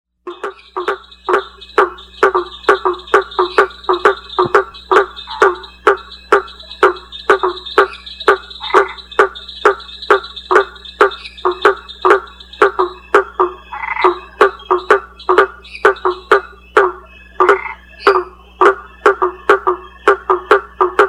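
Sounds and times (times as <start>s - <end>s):
blacksmith tree frogs knocking, Boana faber: 0.3s - 21.0s.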